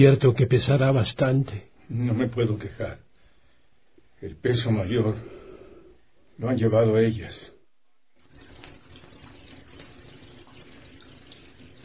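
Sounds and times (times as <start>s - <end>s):
speech: 0.0s - 3.0s, 4.2s - 5.4s, 6.4s - 7.5s
foul-smelling water pouring from a half-blocked tap into a bucket: 8.2s - 11.8s.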